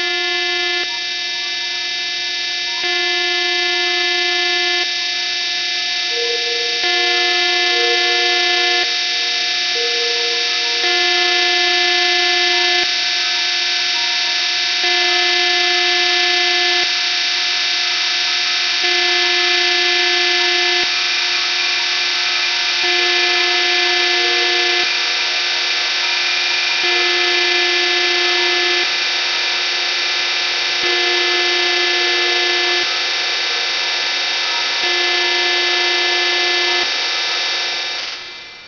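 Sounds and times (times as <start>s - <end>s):
radio interference: 0.0s - 38.6s.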